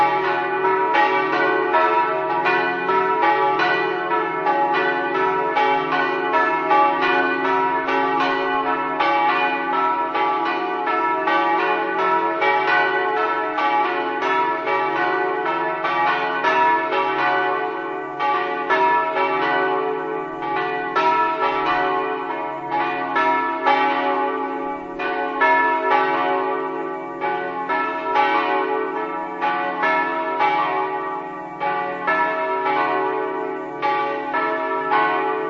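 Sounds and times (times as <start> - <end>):
church bells ringing in Chiopris: 0.0 - 35.4.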